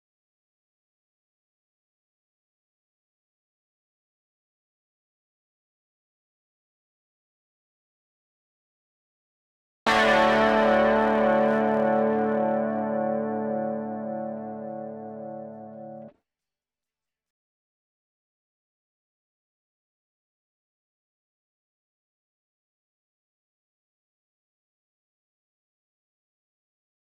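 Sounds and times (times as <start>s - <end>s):
electric guitar through a boost effect: 9.9s - 16.1s.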